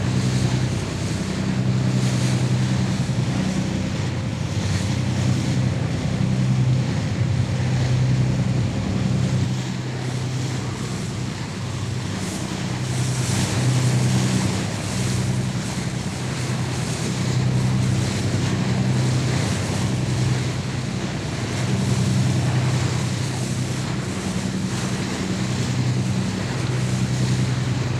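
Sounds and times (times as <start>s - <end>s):
lifeboat bow wave heard from on deck: 0.0s - 27.9s.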